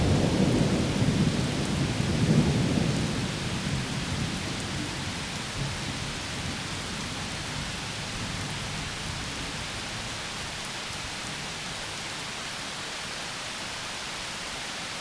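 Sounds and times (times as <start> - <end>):
thunder in a thunderstorm: 0.0 - 6.8
rain in a thunderstorm: 0.0 - 15.0.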